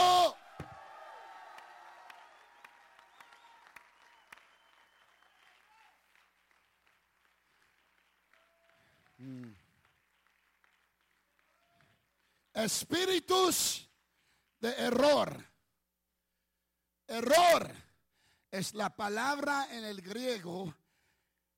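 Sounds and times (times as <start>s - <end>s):
audience applauding and cheering: 0.4s - 12.4s
speech: 12.6s - 13.9s, 14.6s - 15.5s, 17.1s - 17.8s, 18.5s - 20.8s.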